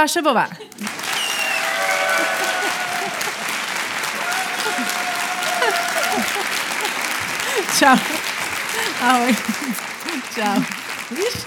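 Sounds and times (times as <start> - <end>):
speech: 0.0 - 1.0, 7.6 - 8.3, 9.0 - 9.8, 10.4 - 11.4
laughter: 0.6 - 11.4
audience applause: 0.7 - 11.4
scattered cheers and whistles from the crowd: 0.8 - 6.5.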